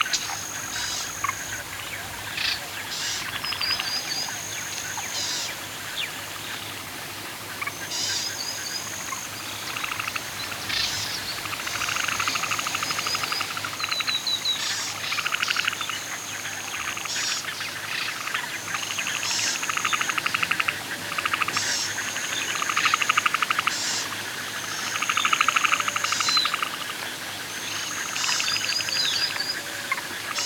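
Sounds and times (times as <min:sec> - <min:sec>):
canoeing on a lake at night: 0:00.0 - 0:13.8
nature sounds at a lake at night: 0:00.0 - 0:30.4.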